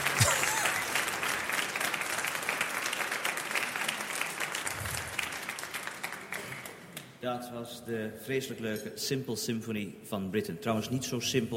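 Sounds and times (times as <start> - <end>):
concert audience applause: 0.0 - 7.0
speech: 7.2 - 11.5.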